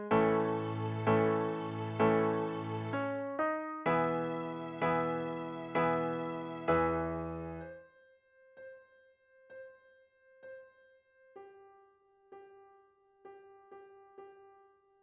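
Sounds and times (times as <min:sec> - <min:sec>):
open string tunes: 0:00.2 - 0:03.1, 0:04.0 - 0:07.6.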